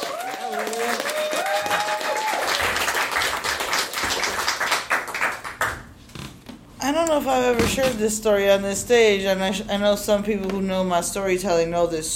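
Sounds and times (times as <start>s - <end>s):
audience applause at a storytelling show: 0.0s - 5.9s
speech: 7.0s - 12.1s.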